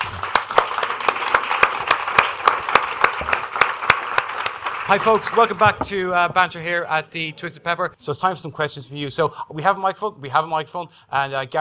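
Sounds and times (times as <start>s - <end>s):
applause: 0.0s - 5.8s
speech: 4.9s - 11.5s.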